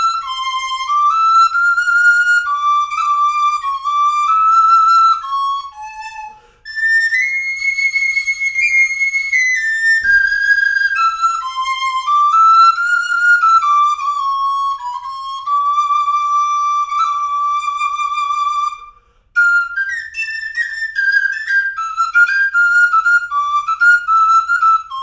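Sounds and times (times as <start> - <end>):
sopranino recorder melody: 0.0 - 25.0.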